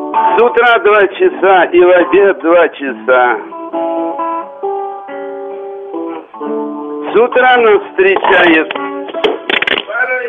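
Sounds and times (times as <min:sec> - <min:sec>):
speech: 0:00.4 - 0:04.2, 0:06.4 - 0:08.8
musical instruments falling over: 0:08.2 - 0:10.0.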